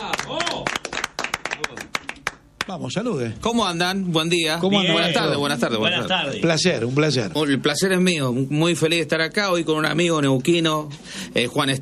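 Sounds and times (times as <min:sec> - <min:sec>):
audience clapping to welcome a guest: 0:00.0 - 0:02.8
speech: 0:02.7 - 0:11.8.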